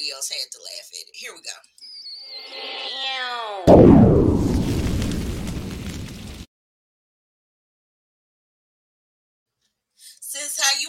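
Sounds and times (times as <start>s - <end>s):
speech: 0.1s - 4.1s
bomb explosion sound effect: 3.7s - 6.5s.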